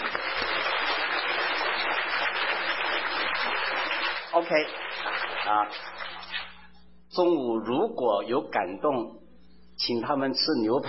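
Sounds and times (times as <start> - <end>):
audience applauding: 0.0 - 6.6
speech: 4.4 - 4.9, 5.5 - 6.0, 7.2 - 9.2, 9.8 - 10.8.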